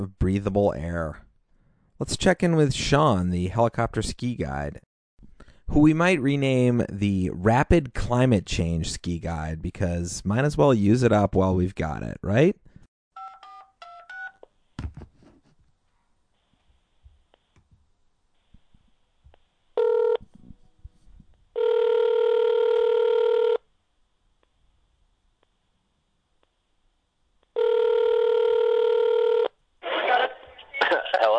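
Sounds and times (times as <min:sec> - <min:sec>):
speech: 0:00.0 - 0:01.2, 0:02.0 - 0:04.9, 0:05.7 - 0:12.6
telephone ringback tones: 0:13.2 - 0:14.4, 0:19.8 - 0:20.2, 0:21.6 - 0:23.6, 0:27.6 - 0:29.5
crackly phone line picking up: 0:21.6 - 0:23.6, 0:27.6 - 0:31.3.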